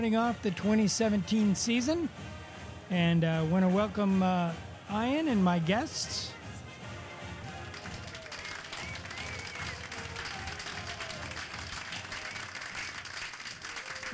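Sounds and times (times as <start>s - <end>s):
speech: 0.0s - 6.4s
studio audience applause at a Wyoming Cowboys football roundtable show: 7.5s - 14.1s.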